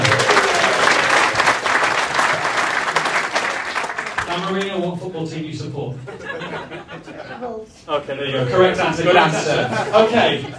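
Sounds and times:
crowd clapping: 0.0 - 5.0
laughter: 6.0 - 7.7, 8.5 - 10.5
speech: 7.7 - 10.5.

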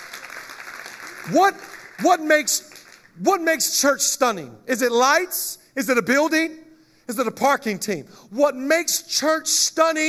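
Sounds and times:
audience clapping: 0.0 - 3.2
speech: 1.2 - 10.0.

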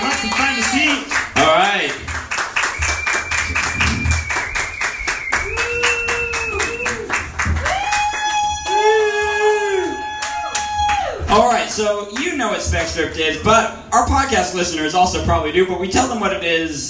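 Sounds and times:
audience applause: 0.0 - 11.4
speech: 11.8 - 16.8.

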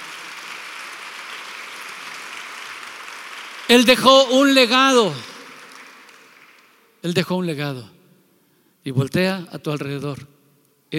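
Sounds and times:
audience applauding: 0.0 - 7.0
speech: 3.7 - 5.3, 7.0 - 8.0, 8.8 - 10.3.

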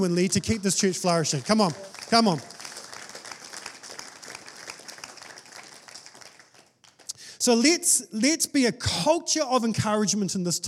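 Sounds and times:
speech: 0.0 - 2.6, 7.4 - 10.6
audience applauding: 0.0 - 7.1.

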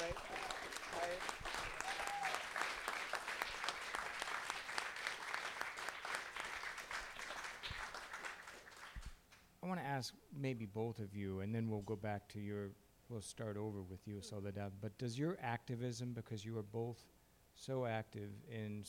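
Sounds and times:
audience applauding: 0.0 - 9.2
brief cheers: 1.7 - 2.5
speech: 9.7 - 18.8.

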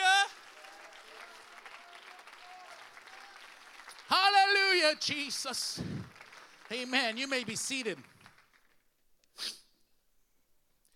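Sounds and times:
audience clapping hands: 0.0 - 9.0
speech: 4.8 - 6.0, 6.7 - 8.1.

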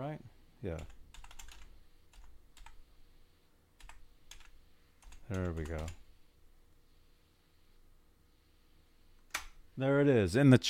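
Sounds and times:
faint hum: 0.0 - 10.6
speech: 0.6 - 1.0, 5.3 - 6.0, 9.8 - 10.6
typing on a computer keyboard: 0.8 - 2.8, 3.8 - 6.0.

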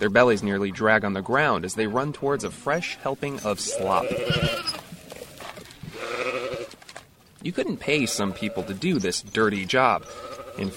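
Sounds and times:
speech: 0.0 - 4.8, 7.4 - 10.7
sheep bleating on a farm: 3.5 - 4.9, 5.9 - 6.8, 7.8 - 9.1, 9.9 - 10.7.

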